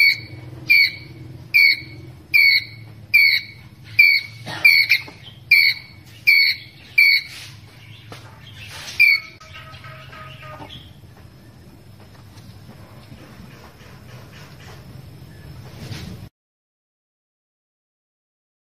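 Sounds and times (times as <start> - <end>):
ground squirrel chirping: 0.0 - 11.6.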